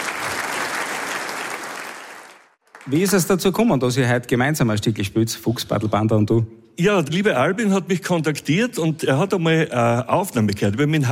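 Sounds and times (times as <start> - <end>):
audience applause at a concert event: 0.0 - 3.3
speech: 2.8 - 11.1.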